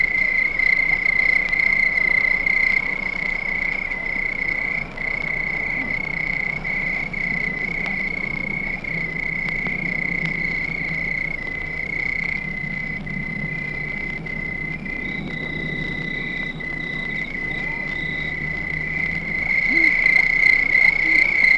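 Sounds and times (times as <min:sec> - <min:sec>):
crickets chirping at night: 0:00.0 - 0:21.5
distant dog barking: 0:16.2 - 0:21.5.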